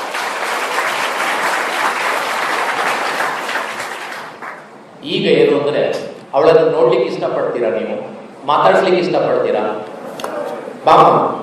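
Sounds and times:
audience applause at an agricultural event in Mangaluru: 0:00.0 - 0:04.7
speech: 0:05.0 - 0:09.9, 0:10.8 - 0:11.3.

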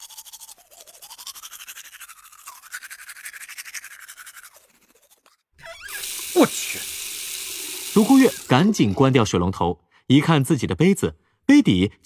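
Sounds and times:
brushing teeth with a toothbrush: 0:00.0 - 0:08.6
speech: 0:06.4 - 0:06.9, 0:08.0 - 0:12.0.

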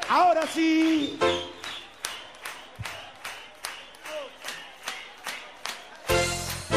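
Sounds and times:
audience clapping hands along to music: 0:00.0 - 0:06.7.

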